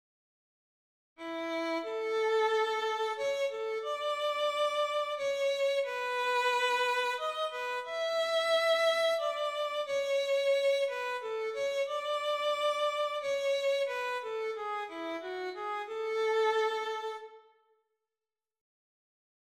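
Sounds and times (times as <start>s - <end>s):
long chromatic melody: 1.2s - 17.4s.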